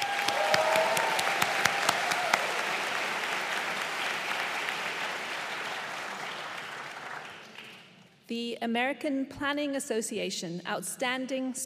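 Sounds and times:
audience applause: 0.0s - 7.9s
speech: 8.3s - 11.6s.

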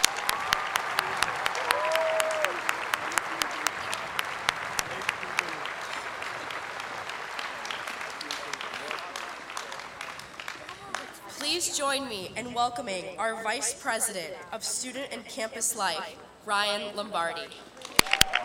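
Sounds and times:
audience applause: 0.0s - 11.3s, 17.8s - 18.4s
speech: 11.8s - 17.7s.

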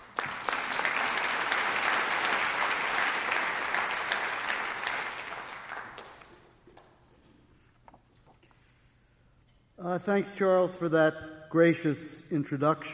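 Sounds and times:
audience applause: 0.0s - 6.2s
speech: 10.0s - 12.9s.

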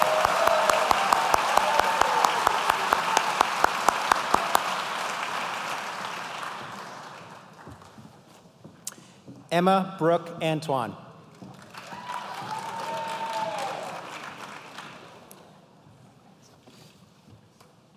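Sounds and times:
audience applause for graduates: 0.0s - 7.9s, 11.5s - 15.3s
speech: 9.5s - 11.0s.

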